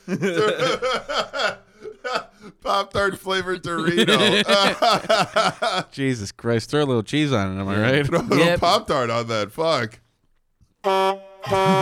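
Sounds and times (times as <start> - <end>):
laughter: 0.0 - 5.9, 7.9 - 8.8
speech: 0.1 - 1.2, 2.9 - 10.0, 10.8 - 11.7
truck horn honking: 10.8 - 11.7.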